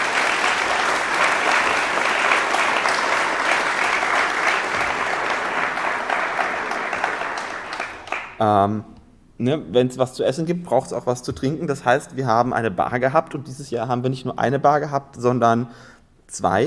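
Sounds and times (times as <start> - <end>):
audience applause: 0.0 - 8.4
speech: 8.4 - 16.6.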